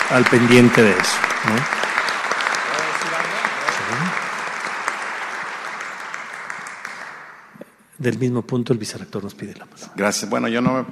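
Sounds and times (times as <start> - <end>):
audience applause at a university gathering: 0.0 - 7.5
speech: 0.1 - 1.8, 8.0 - 10.9.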